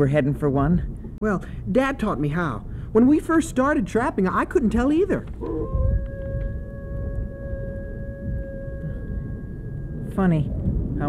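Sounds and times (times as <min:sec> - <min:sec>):
speech: 0:00.0 - 0:05.8, 0:10.2 - 0:11.0
long animal howl: 0:05.4 - 0:10.2
low rushing rumble: 0:05.4 - 0:11.0.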